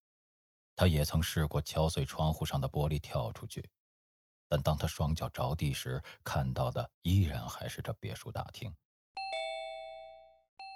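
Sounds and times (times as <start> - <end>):
speech: 0.8 - 3.8, 4.5 - 9.3
chiming doorbell ringing: 9.2 - 10.7.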